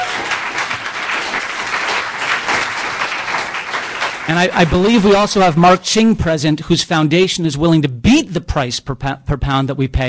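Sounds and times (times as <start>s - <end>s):
audience applause: 0.0s - 5.6s
speech: 4.3s - 10.0s.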